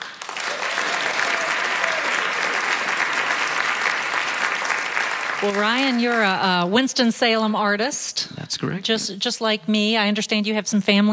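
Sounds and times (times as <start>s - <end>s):
audience applause welcoming a performer: 0.0s - 6.7s
speech: 5.4s - 11.1s.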